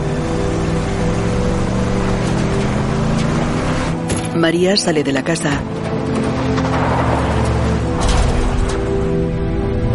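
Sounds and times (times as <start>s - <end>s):
car engine droning on a dirt road to a ranch: 0.0s - 9.9s
speech: 4.4s - 5.9s.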